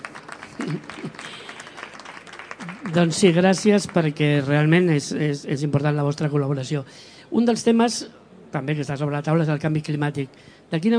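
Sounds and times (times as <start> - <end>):
short round of applause: 0.0 - 4.7
speech: 0.6 - 1.3, 2.9 - 10.9.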